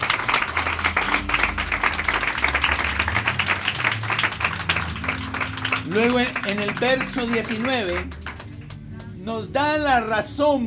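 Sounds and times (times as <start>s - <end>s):
audience applause: 0.0s - 8.8s
speech: 6.0s - 8.2s, 9.2s - 10.6s.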